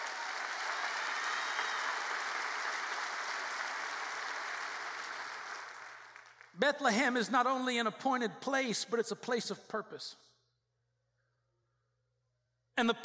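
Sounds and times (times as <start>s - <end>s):
audience clapping hands: 0.0s - 6.6s
speech: 6.6s - 10.3s, 12.8s - 13.0s.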